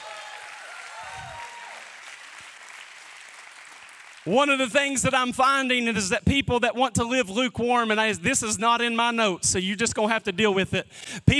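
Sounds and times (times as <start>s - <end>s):
scattered cheers and shouts: 0.0s - 2.3s
audience applause: 0.0s - 4.3s
speech: 4.2s - 11.3s.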